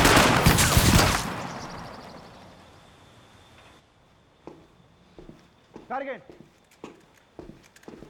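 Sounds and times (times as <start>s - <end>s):
firing squad rifle volley: 0.0s - 2.2s
speech: 5.9s - 6.5s.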